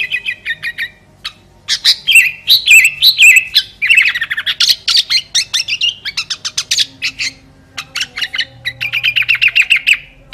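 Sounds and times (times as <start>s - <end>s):
sooty-headed bulbul chattering: 0.0s - 10.3s.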